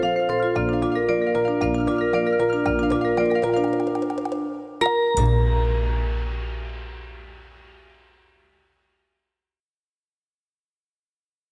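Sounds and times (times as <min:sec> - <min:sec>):
instrumental dance piece: 0:00.0 - 0:08.2.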